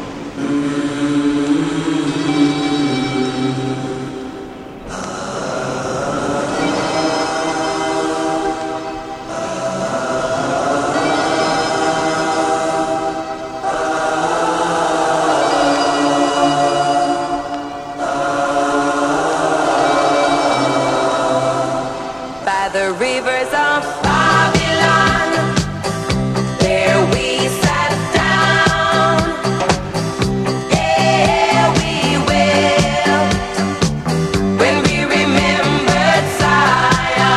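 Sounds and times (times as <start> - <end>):
disco hit music: 0.4 - 37.3.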